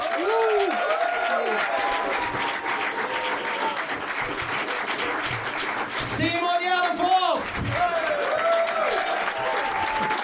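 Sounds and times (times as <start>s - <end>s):
audience applause: 0.0s - 10.2s.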